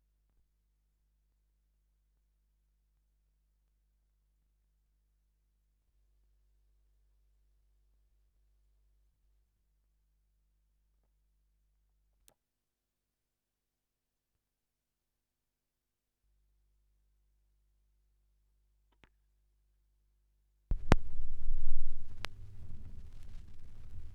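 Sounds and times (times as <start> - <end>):
gramophone record noise at 16 rpm: 20.7 - 24.1.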